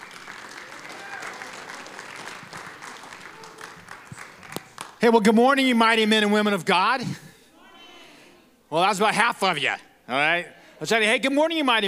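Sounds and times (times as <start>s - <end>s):
audience applause for arriving speaker: 0.0s - 5.0s
speech: 5.0s - 7.2s, 8.7s - 11.8s.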